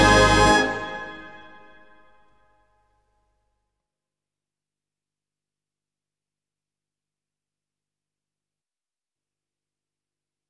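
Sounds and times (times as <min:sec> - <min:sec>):
trumpet call: 0:00.0 - 0:02.0.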